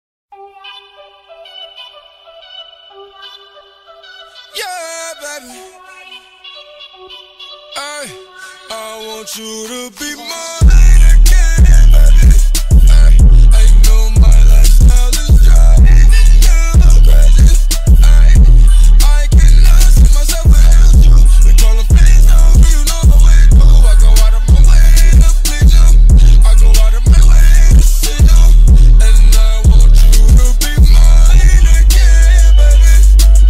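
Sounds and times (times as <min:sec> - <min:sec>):
bass boosted music: 0:10.6 - 0:33.4.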